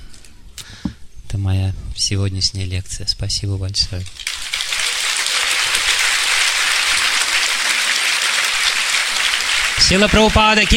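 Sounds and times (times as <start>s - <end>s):
speech: 1.4s - 4.2s, 9.9s - 10.7s
audience applause after lecture: 4.2s - 10.7s.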